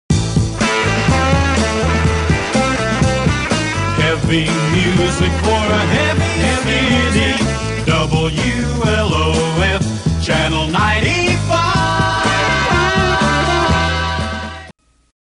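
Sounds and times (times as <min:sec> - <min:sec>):
heavy music jingle: 0:00.1 - 0:14.7.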